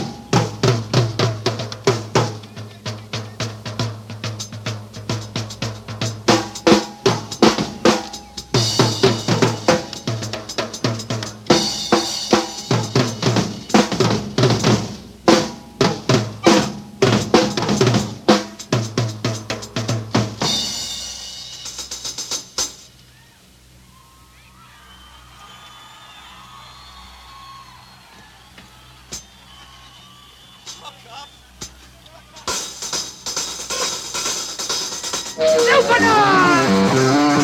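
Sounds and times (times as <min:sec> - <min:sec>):
drum solo: 0:00.0 - 0:22.9, 0:32.4 - 0:37.4.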